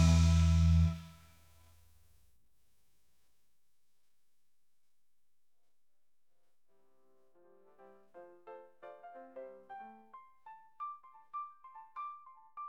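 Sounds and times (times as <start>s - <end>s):
drinking song: 0.0s - 1.0s.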